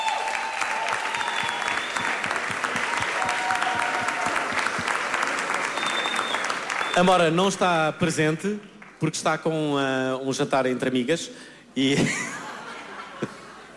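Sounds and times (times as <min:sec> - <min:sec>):
audience applause: 0:00.0 - 0:07.8
speech: 0:07.0 - 0:12.3
laughter: 0:11.8 - 0:13.7.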